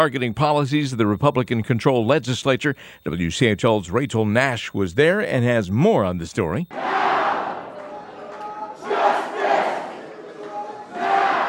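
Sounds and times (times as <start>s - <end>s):
speech: 0.0s - 7.2s
hundreds of protesters chanting and singing inside the North Carolina General Assembly: 6.7s - 11.4s.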